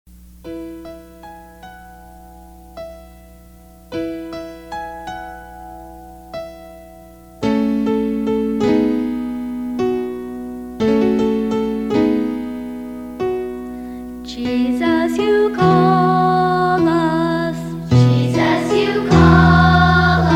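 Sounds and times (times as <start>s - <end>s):
worship song: 3.1s - 20.3s.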